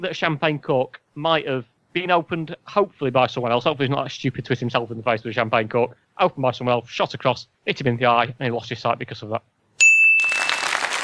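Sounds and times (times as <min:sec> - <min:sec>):
speech: 0:00.0 - 0:09.5
applause sound effect: 0:10.2 - 0:11.0.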